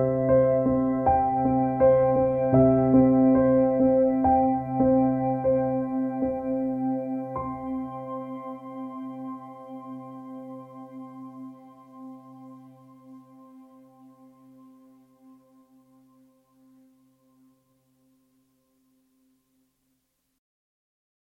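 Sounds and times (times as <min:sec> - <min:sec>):
calm reflective minimalist intermediate level piano solo: 0:00.0 - 0:14.6.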